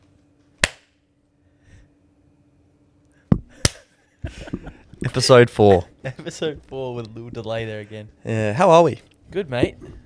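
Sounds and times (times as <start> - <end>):
faint hum: 0.0 - 10.0
hand claps: 3.6 - 3.9
speech: 4.2 - 10.0.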